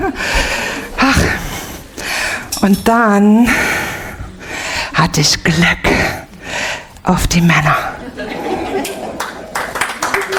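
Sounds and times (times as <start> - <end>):
speech: 0.0 - 0.4, 2.6 - 3.7, 5.0 - 6.1, 7.1 - 7.9
laughter: 0.0 - 1.4, 7.8 - 10.3
audience clapping at a live comedy performance: 8.4 - 10.3.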